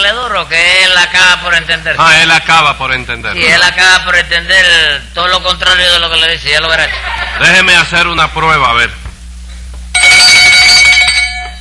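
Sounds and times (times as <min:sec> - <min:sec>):
speech: 0:00.1 - 0:09.0
laughter: 0:06.7 - 0:07.8
small handbell ringing: 0:10.0 - 0:11.5.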